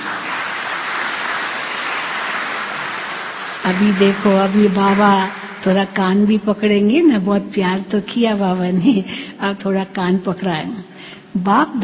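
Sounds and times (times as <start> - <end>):
audience clapping: 0.0 - 6.3
speech: 3.6 - 11.8.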